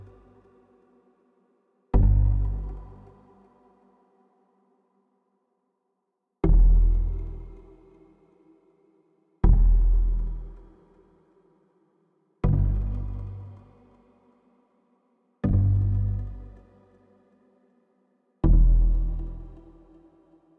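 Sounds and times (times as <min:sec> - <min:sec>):
bass: 0:00.0 - 0:00.8, 0:01.9 - 0:03.8, 0:06.4 - 0:08.3, 0:09.4 - 0:11.4, 0:12.4 - 0:14.2, 0:15.4 - 0:17.2, 0:18.4 - 0:20.5.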